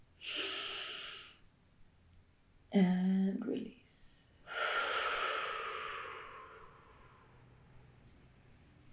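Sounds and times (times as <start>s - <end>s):
slow inhale through the nose during a guided self-love meditation: 0.2s - 1.4s, 4.5s - 7.4s
speech: 2.7s - 4.1s.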